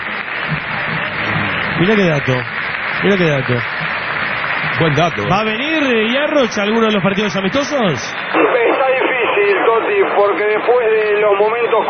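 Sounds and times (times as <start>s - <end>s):
stadium crowd at River Plate applauding Messi: 0.0s - 8.4s
speech: 1.8s - 3.8s, 4.8s - 11.8s.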